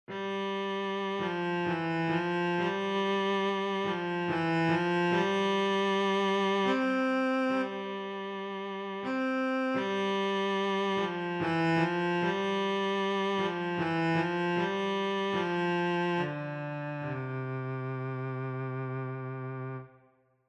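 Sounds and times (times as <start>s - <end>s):
cello: 0.1s - 19.9s.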